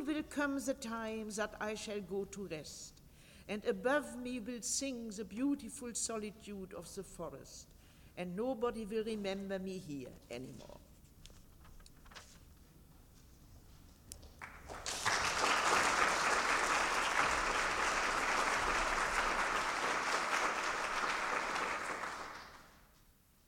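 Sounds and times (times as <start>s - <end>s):
speech: 0.0s - 10.8s
audience applause: 14.4s - 22.8s.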